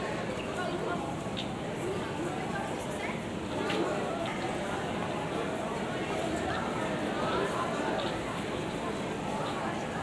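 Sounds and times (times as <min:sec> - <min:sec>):
people: 0:00.0 - 0:10.0.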